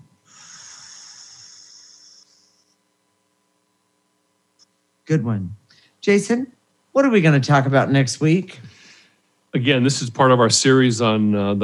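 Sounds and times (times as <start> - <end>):
long breath blown out: 0.3 - 2.6
speech: 5.1 - 8.7, 9.5 - 11.6.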